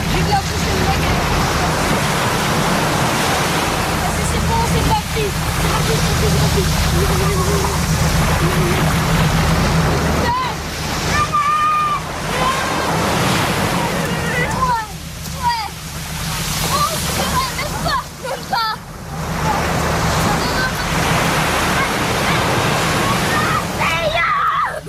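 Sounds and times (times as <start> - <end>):
waves on the beach of Port-Ardoué near Pointe de Gros-Rocher: 0.0 - 24.8.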